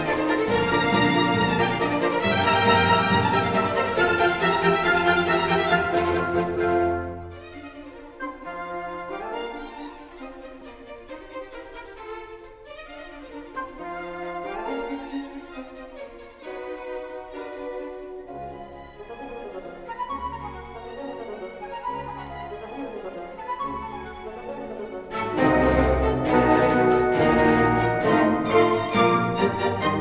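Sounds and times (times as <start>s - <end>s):
classical music: 0.0s - 29.9s.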